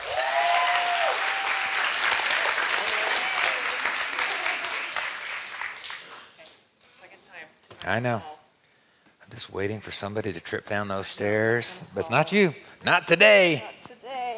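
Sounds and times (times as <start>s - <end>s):
audience applause: 0.0s - 6.4s
speech: 7.9s - 8.4s, 9.3s - 13.8s.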